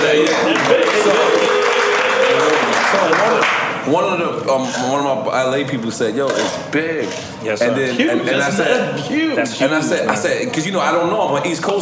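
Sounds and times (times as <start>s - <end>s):
audience clapping: 0.0s - 3.8s
speech: 3.9s - 11.8s.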